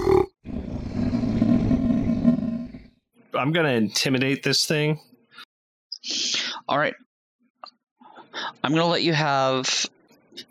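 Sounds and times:
monster growling and snarling: 0.0 - 2.9
speech: 3.4 - 5.1, 6.0 - 7.1, 8.4 - 10.5.

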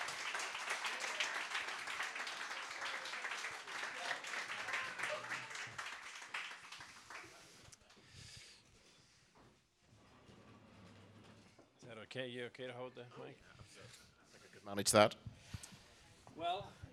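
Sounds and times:
crowd round of applause: 0.0 - 7.7
speech: 12.1 - 14.0, 14.7 - 15.2, 16.4 - 16.8.

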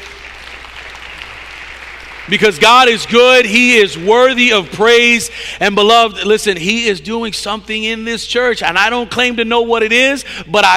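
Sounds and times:
audience hand clapping in praise: 0.0 - 5.1
speech: 2.3 - 10.7.

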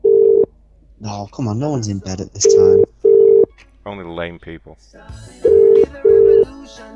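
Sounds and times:
ringback tone of an outgoing telephone call: 0.0 - 0.5, 2.4 - 3.5, 5.5 - 6.4
speech: 1.0 - 2.9, 3.9 - 6.9.

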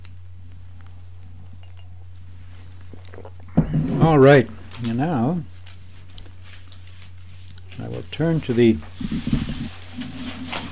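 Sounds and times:
low electrical hum: 0.0 - 10.7
coffee cup clinking against a saucer: 1.6 - 1.9
speech: 4.0 - 5.5, 8.1 - 9.4.

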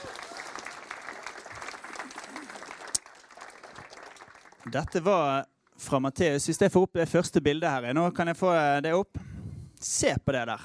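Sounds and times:
audience applause: 0.0 - 5.0
speech: 4.6 - 9.2, 9.8 - 10.6.

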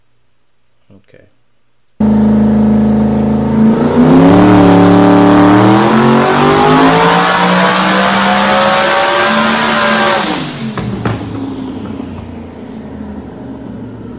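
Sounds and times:
speech: 0.9 - 1.4
turbocharged car engine revving during dyno pull: 2.0 - 14.1
sharp pop: 10.6 - 12.4.

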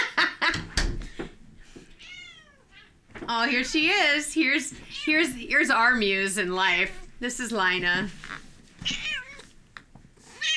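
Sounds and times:
speech: 0.4 - 0.7, 3.3 - 9.0
cat meowing: 2.0 - 3.0, 8.8 - 9.5, 10.4 - 10.5.

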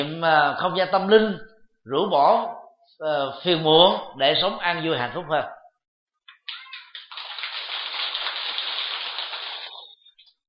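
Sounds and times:
speech: 0.0 - 5.6
audience applause: 6.6 - 9.8.

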